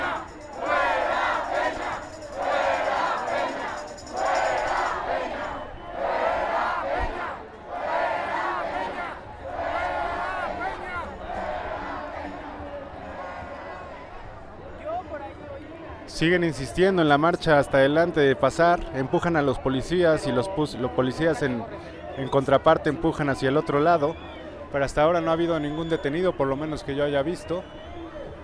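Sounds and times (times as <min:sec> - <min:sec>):
large protest crowd shouting together in rhythmic chant-like bursts: 0:00.0 - 0:14.2
speech: 0:16.2 - 0:27.8.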